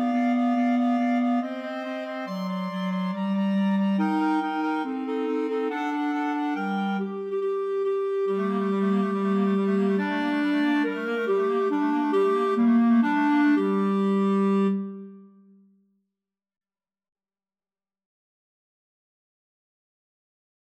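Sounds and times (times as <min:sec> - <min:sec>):
clarinet trio playing a symphony: 0:00.0 - 0:15.2.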